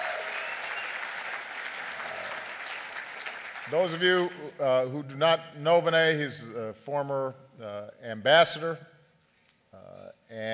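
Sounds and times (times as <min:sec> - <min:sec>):
crowd applause: 0:00.0 - 0:04.1
speech: 0:03.7 - 0:08.9, 0:09.8 - 0:10.5.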